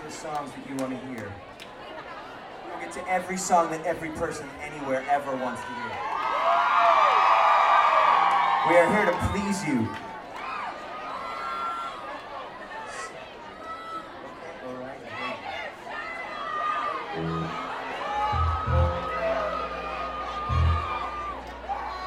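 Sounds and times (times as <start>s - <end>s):
speech: 0.2s - 1.6s, 2.7s - 6.8s, 8.6s - 10.1s
rowdy crowd shouting and whooping: 5.5s - 14.3s, 15.1s - 22.0s.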